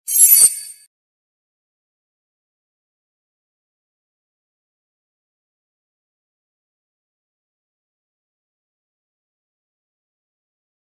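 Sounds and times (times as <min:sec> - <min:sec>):
beep: 0:00.1 - 0:00.8.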